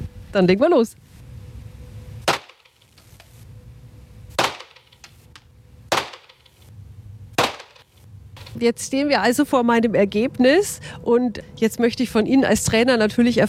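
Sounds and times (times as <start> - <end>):
speech: 0.4 - 1.1, 8.6 - 13.4
gunshots fired at a shooting range: 2.3 - 2.8, 4.4 - 4.9, 5.9 - 6.5, 7.4 - 7.8.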